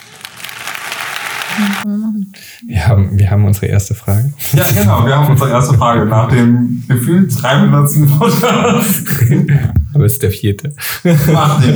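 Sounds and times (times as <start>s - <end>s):
applause: 0.0s - 1.8s
laughter: 1.6s - 11.7s
speech: 1.6s - 11.7s.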